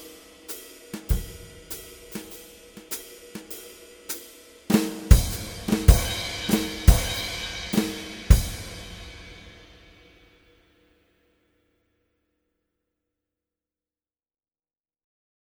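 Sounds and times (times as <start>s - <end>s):
drum kit: 0.0s - 10.1s.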